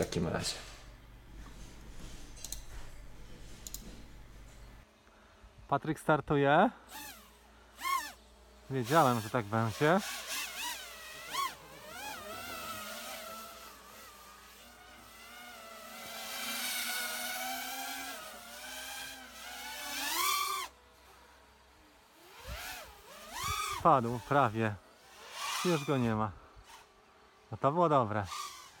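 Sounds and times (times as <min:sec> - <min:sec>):
speech: 0:00.0 - 0:00.7, 0:05.7 - 0:07.2, 0:08.7 - 0:10.3, 0:23.8 - 0:24.8, 0:25.6 - 0:26.4, 0:27.5 - 0:28.5
drone flying with buzzing motors: 0:06.8 - 0:27.5.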